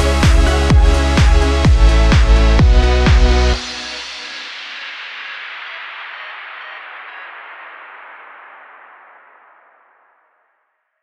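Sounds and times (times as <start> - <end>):
positive upbeat dance pop music: 0.0 - 8.8.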